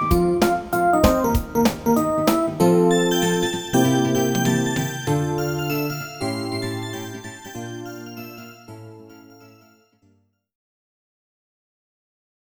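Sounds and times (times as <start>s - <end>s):
synth music: 0.0s - 9.7s.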